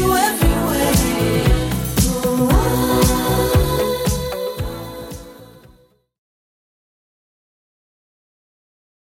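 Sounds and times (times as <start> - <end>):
80s music at 115 bpm: 0.0 - 5.8.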